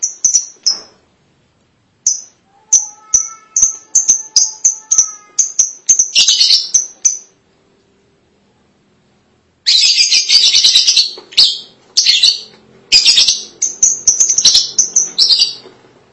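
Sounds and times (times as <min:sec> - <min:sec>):
lovebird squawking chatter: 0:02.1 - 0:07.3, 0:09.7 - 0:15.7.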